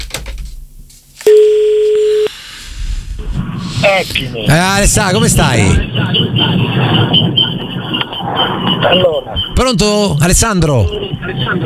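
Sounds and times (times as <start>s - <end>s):
telephone call connecting, dialing tones: 1.3s - 2.3s
speech: 3.9s - 7.7s, 8.3s - 11.6s.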